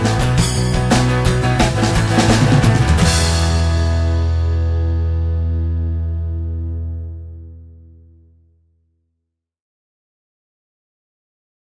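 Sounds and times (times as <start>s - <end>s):
acoustic music: 0.0s - 8.3s.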